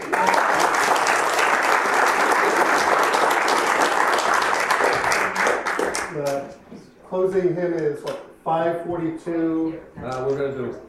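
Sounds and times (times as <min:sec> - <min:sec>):
audience applause: 0:00.0 - 0:06.4
speech: 0:07.1 - 0:10.8.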